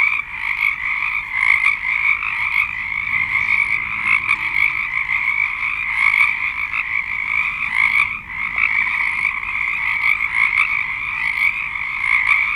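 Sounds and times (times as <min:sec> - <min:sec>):
frog chorus of high trilled notes: 0:00.0 - 0:12.5.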